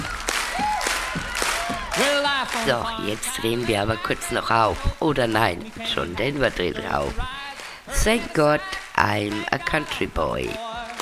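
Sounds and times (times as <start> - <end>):
audience clapping at a country music concert: 0.0 - 11.0
country music: 0.0 - 11.0
speech: 2.4 - 7.4, 8.0 - 10.7.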